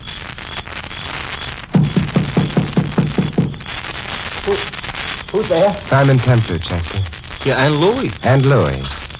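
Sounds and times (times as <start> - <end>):
knocking on a door: 1.8 - 3.5
speech: 5.3 - 9.0.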